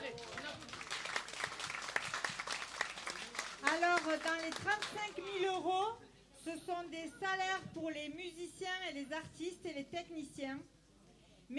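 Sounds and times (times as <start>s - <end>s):
crowd applauding: 0.0s - 5.1s
speech: 4.0s - 10.7s.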